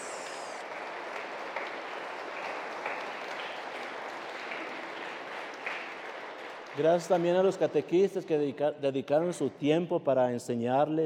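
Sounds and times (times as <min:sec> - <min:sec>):
audience applauding in church: 0:00.0 - 0:07.4
speech: 0:06.8 - 0:11.0.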